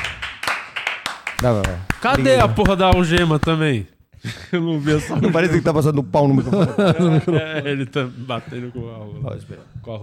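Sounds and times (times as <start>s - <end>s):
hand clapping: 0.0s - 3.7s
speech: 1.4s - 10.0s
laughter: 4.3s - 8.8s.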